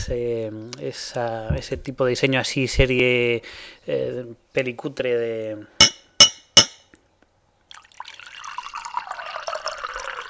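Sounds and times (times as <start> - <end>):
speech: 0.0 - 5.8
sharp glassy clinks: 5.8 - 6.9
liquid pouring into a glass: 7.7 - 10.2.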